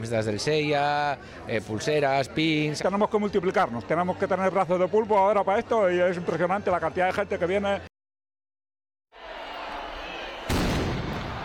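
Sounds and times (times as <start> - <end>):
speech: 0.0 - 7.9
traditional cannon shot opening Semana Grande de Donostia: 10.5 - 11.4.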